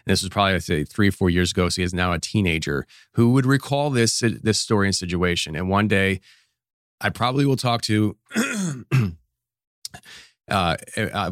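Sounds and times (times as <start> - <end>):
speech: 0.0 - 6.4, 7.0 - 9.2, 10.0 - 11.3
person coughing and clearing throat: 8.3 - 9.2.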